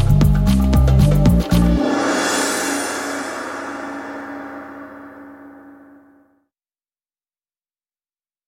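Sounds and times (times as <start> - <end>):
afro ballad music at 115 bpm: 0.0 - 2.8.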